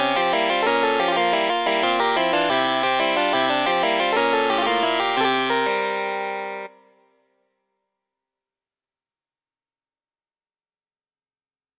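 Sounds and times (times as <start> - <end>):
MIDI oriental dance music: 0.0 - 6.7.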